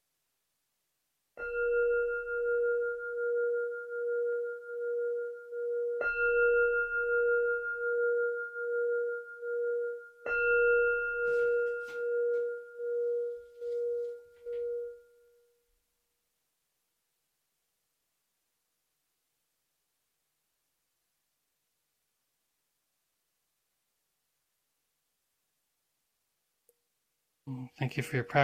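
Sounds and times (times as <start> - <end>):
meditation bell ringing: 1.4 - 15.6
speech: 27.6 - 28.4.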